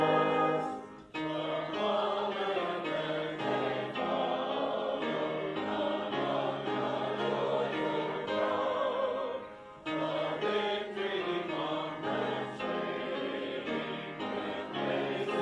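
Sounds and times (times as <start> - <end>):
brass instruments: 0.0 - 2.0
piano: 0.0 - 15.4.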